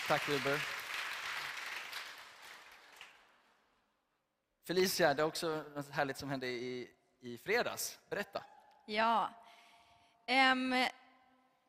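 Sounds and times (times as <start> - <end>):
applause: 0.0 - 3.6
speech: 0.1 - 0.8, 4.7 - 9.4, 10.3 - 11.0.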